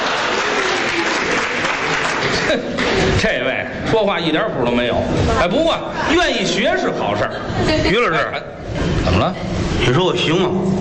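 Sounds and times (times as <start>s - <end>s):
audience applause: 0.0s - 3.2s
speech: 3.2s - 10.8s.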